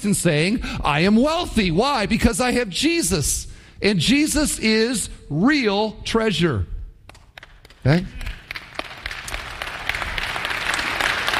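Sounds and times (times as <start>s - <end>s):
speech: 0.0s - 6.7s, 7.8s - 8.2s
audience clapping: 7.1s - 11.3s.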